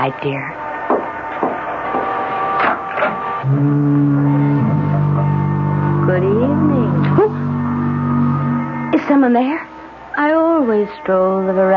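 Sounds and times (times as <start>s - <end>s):
speech: 0.0s - 1.0s, 3.4s - 4.6s, 6.1s - 7.3s, 9.1s - 9.6s, 10.2s - 11.7s
lighthouse foghorn: 2.3s - 9.5s.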